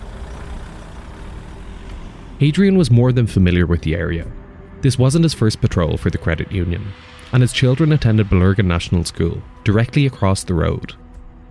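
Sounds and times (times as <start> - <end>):
vehicle engine idling in a car park: 0.0 - 9.8
speech: 2.4 - 11.0.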